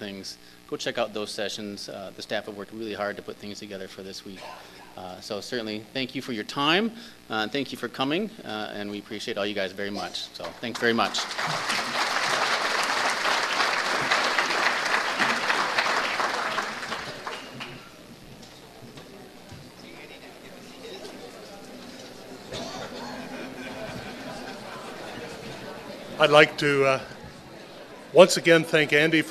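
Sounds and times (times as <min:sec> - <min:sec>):
speech: 0:00.0 - 0:12.0, 0:26.2 - 0:27.2, 0:28.1 - 0:29.2
audience applause: 0:10.7 - 0:18.1, 0:22.8 - 0:27.0
laughter: 0:22.3 - 0:28.1.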